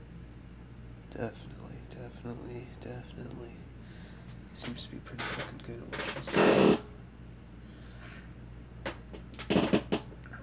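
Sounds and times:
speech: 1.2s - 3.7s, 4.6s - 6.8s
chair creaking: 4.3s - 6.9s, 8.8s - 10.2s.

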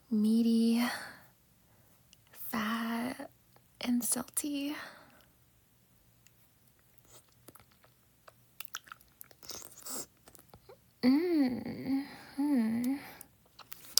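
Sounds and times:
speech: 0.1s - 1.2s, 3.9s - 5.0s, 11.0s - 12.8s
chewing and biting into a hard meaty sausage: 6.2s - 10.8s, 13.4s - 13.9s
hummed moaning from a voice: 11.0s - 13.2s.

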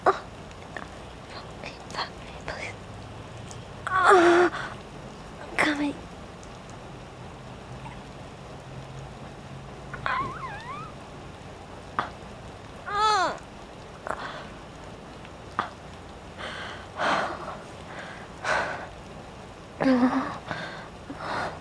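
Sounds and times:
rain: 0.0s - 21.6s
orgasm vocalizations: 10.0s - 11.0s.

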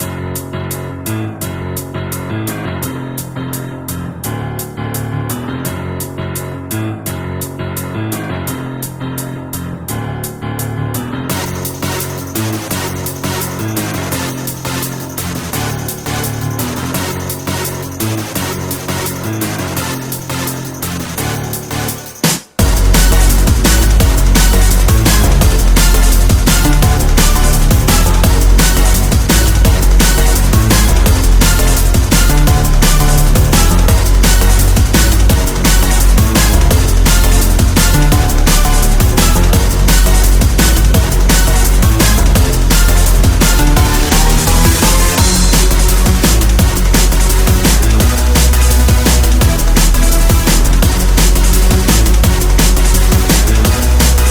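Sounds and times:
instrumental remix: 0.0s - 54.3s.

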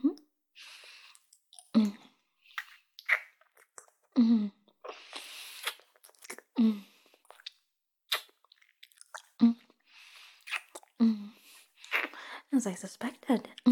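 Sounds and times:
wet chewing and eating sounds in an intimate roleplay: 1.0s - 4.2s, 4.8s - 11.0s, 11.6s - 12.2s
speech: 6.6s - 6.9s, 12.6s - 13.7s.

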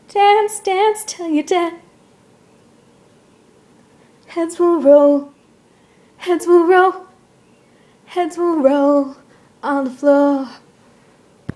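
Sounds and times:
woman singing: 0.1s - 1.9s, 4.2s - 5.4s, 6.2s - 7.2s, 8.1s - 10.6s.

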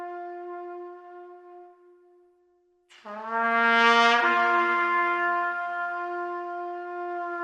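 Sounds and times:
fanfare: 2.9s - 6.0s.

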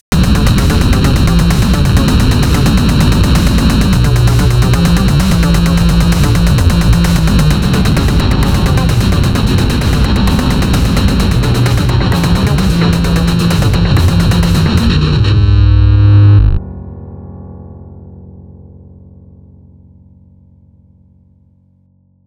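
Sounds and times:
dubstep music: 0.1s - 16.6s.

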